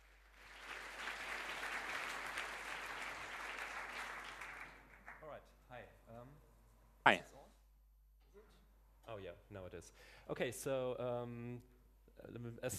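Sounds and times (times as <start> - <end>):
audience applause: 0.0 - 5.2
speech: 9.2 - 12.7.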